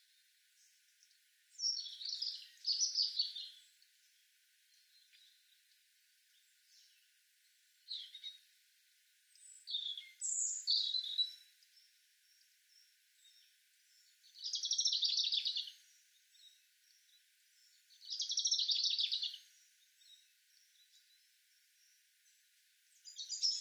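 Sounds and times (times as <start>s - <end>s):
European robin Erithacus rubecula singing: 1.0s - 3.8s, 9.3s - 22.0s, 22.9s - 23.6s.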